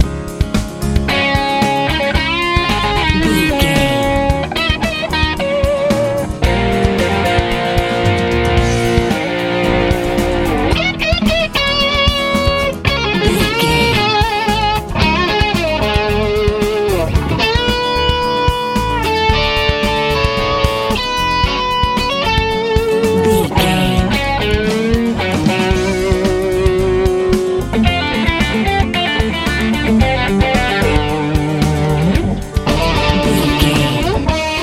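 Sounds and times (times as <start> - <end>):
easy rock music: 0.0 - 34.6.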